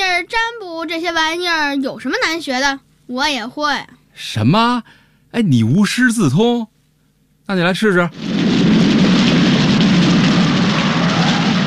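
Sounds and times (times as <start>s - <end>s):
speech: 0.8s - 6.7s, 7.5s - 8.4s
rain falling: 8.1s - 11.6s.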